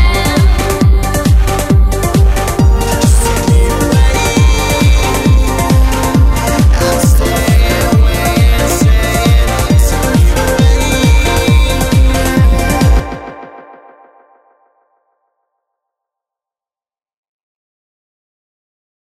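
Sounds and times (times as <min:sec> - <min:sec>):
trance music at 135 bpm in G: 0:00.0 - 0:14.3.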